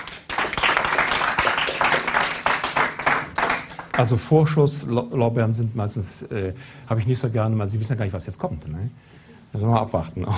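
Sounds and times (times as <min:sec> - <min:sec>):
audience applause: 0:00.0 - 0:04.1
speech: 0:04.0 - 0:10.3.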